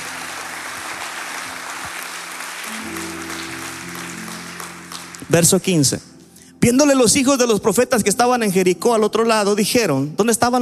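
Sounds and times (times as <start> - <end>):
audience applauding: 0.0 - 5.9
speech: 5.3 - 10.6.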